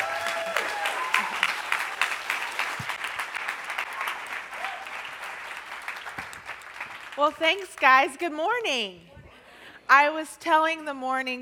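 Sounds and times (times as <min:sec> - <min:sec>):
church service audience applause welcoming a speaker: 0:00.0 - 0:07.7
speech: 0:07.2 - 0:09.1, 0:09.9 - 0:11.4.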